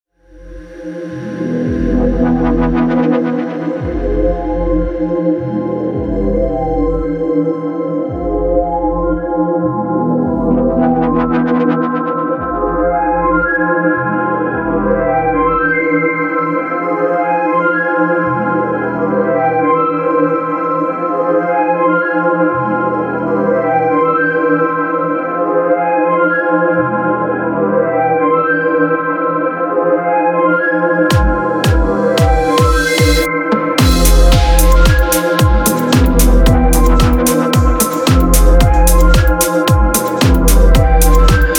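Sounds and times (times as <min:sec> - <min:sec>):
electronica music: 0:00.2 - 0:26.1, 0:27.0 - 0:41.5.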